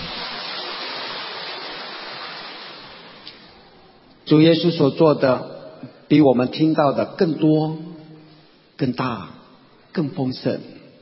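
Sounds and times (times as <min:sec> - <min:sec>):
audience applause: 0:00.0 - 0:03.2
speech: 0:04.3 - 0:05.5, 0:06.1 - 0:08.0, 0:08.8 - 0:09.4, 0:10.0 - 0:10.8.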